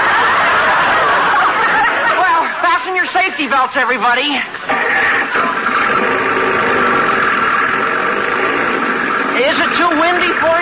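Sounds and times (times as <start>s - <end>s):
laughter: 0.0s - 3.7s, 4.6s - 8.0s
speech: 3.3s - 4.7s, 9.4s - 10.6s
roadster car engine running: 4.6s - 10.6s.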